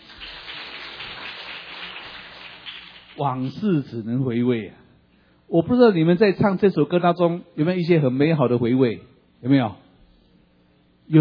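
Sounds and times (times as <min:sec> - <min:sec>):
audience applause: 0:00.0 - 0:03.6
speech: 0:03.2 - 0:04.8, 0:05.5 - 0:09.8.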